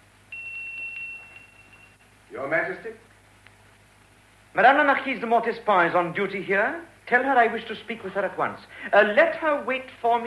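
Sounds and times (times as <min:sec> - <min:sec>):
bell ringing: 0:00.3 - 0:02.0
speech: 0:02.3 - 0:03.1, 0:04.6 - 0:10.2.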